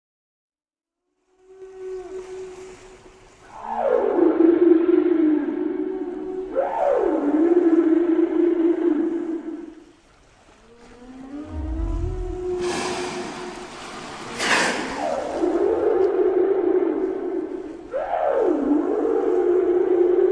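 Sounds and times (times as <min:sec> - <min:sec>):
whale song with tonal moans: 0:01.2 - 0:03.0, 0:03.6 - 0:09.9, 0:10.5 - 0:20.3.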